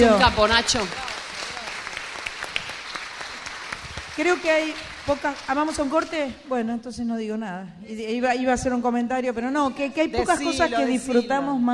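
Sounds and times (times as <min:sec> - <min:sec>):
speech: 0:00.0 - 0:01.1, 0:04.2 - 0:11.7
audience applause at a stage performance: 0:00.0 - 0:06.2.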